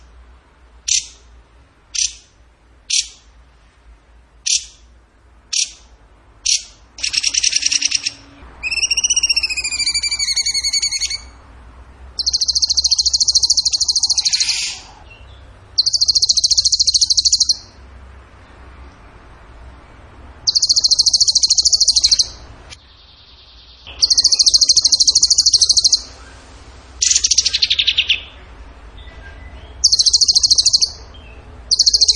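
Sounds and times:
bird trilling: 0.9 - 1.2, 2.0 - 2.3, 2.9 - 3.2, 4.5 - 4.8, 6.5 - 11.4, 12.2 - 17.8, 20.4 - 22.4, 23.1 - 26.4, 27.0 - 28.4, 29.4 - 32.1.

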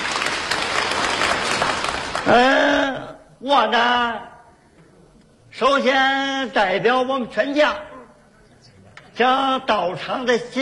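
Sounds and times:
wedding guests applauding: 0.0 - 2.6
speech: 2.3 - 4.3, 5.6 - 7.9, 9.2 - 10.6.

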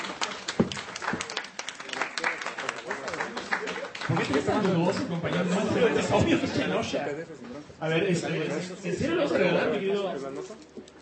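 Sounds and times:
audience clapping at a comic convention panel: 0.0 - 6.2
laughter: 4.0 - 6.9
speech: 4.1 - 10.7.

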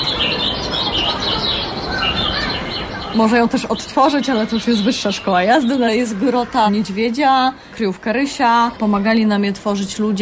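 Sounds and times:
bird calls from an exhibit sound device: 0.0 - 7.1
speech: 3.2 - 10.2.

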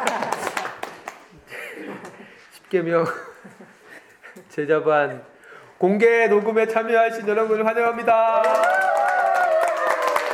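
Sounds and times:
group clapping hands: 0.0 - 1.4, 8.2 - 10.3
speech: 2.7 - 3.3, 4.6 - 8.8.

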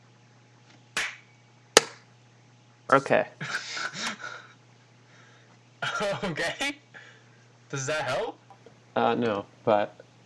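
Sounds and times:
hand clap: 1.0 - 1.2, 1.8 - 2.0
speech: 2.9 - 4.1, 5.9 - 6.8, 7.7 - 8.4, 9.0 - 10.0
laughter: 3.4 - 4.5, 5.8 - 6.7.

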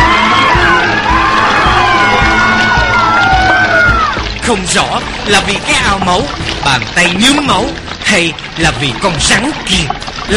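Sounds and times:
group of people screaming loudly: 0.0 - 4.4
speech: 4.5 - 10.3.

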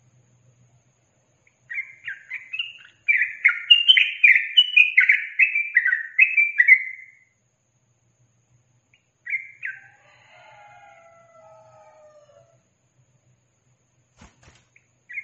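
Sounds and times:
yellow-vented bulbul singing chattering slurred phrases: 1.4 - 7.2, 8.9 - 9.9, 14.7 - 15.2.

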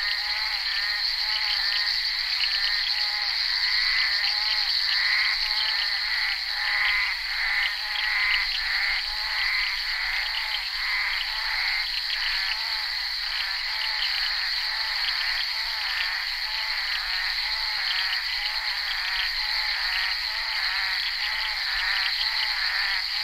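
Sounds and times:
bullfrogs croaking: 0.0 - 23.2.

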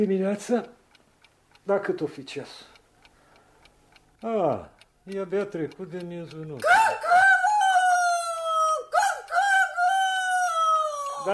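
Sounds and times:
speech: 0.0 - 0.8, 1.6 - 2.7, 4.2 - 7.2
rooster crowing at night: 6.6 - 11.3.

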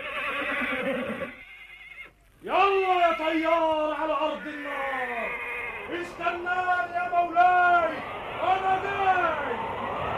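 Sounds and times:
horse neighing: 0.0 - 2.2, 4.3 - 5.9
speech: 0.6 - 1.4, 2.4 - 5.2, 5.9 - 9.7.

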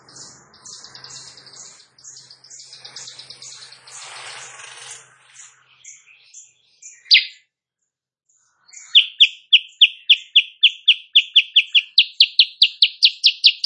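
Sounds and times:
Sooty-headed bulbul singing in the morning: 0.0 - 7.5, 8.3 - 13.6.

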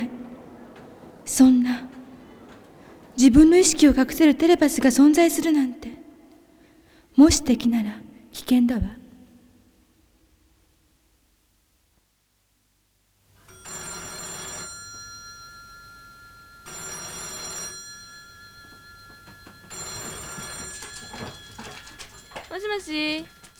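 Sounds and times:
telephone ringing: 0.0 - 5.6, 13.4 - 23.5
speech: 1.3 - 1.9, 3.2 - 5.9, 7.2 - 9.0.

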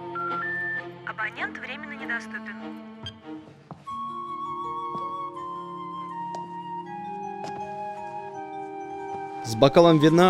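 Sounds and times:
telephone dialing tones: 0.2 - 2.4
speech: 1.2 - 2.9, 9.6 - 10.2.

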